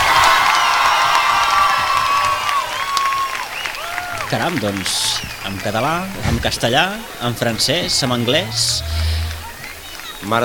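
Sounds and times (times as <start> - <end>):
carnival crowd cheering and applauding: 0.0 - 10.4
speech: 4.3 - 9.1, 10.2 - 10.4.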